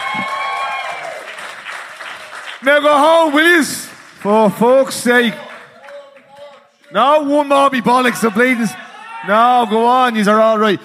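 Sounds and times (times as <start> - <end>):
audience giving a round of applause: 0.0 - 6.7
speech: 2.6 - 5.5, 6.9 - 10.8.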